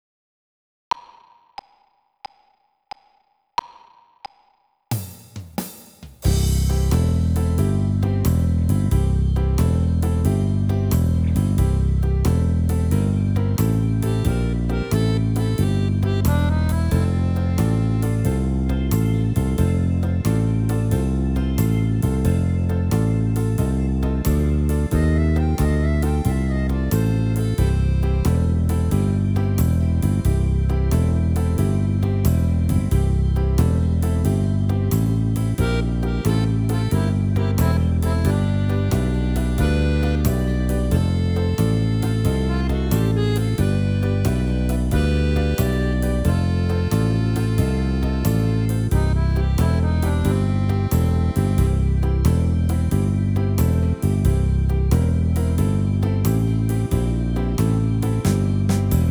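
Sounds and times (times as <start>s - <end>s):
blues music: 6.2s - 59.0s.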